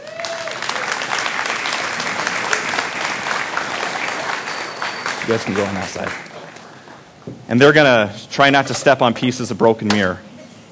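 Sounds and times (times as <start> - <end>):
audience applause welcoming two women onto a stage: 0.0 - 7.1
speech: 5.3 - 6.3, 7.5 - 10.3.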